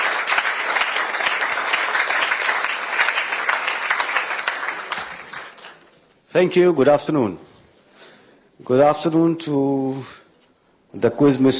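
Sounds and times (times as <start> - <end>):
audience applause: 0.0 - 6.0
speech: 6.3 - 7.5, 8.6 - 10.2, 10.9 - 11.5.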